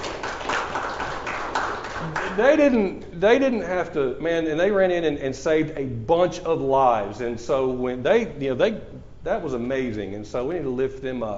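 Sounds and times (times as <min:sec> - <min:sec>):
small group clapping in a room to honor rescuing officers: 0:00.0 - 0:02.8
speech: 0:02.4 - 0:11.3.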